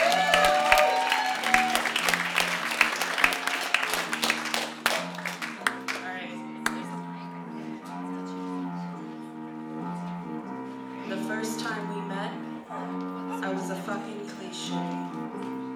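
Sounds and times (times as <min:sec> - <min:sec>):
audience applause: 0:00.0 - 0:06.8
low murmur of voices: 0:00.0 - 0:15.7.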